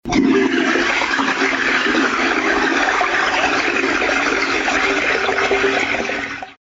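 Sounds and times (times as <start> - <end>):
toilet: 0.0 - 6.6.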